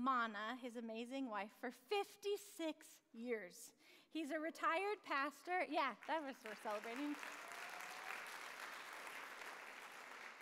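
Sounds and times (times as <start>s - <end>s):
speech: 0.0s - 7.4s
audience applause: 6.4s - 10.4s.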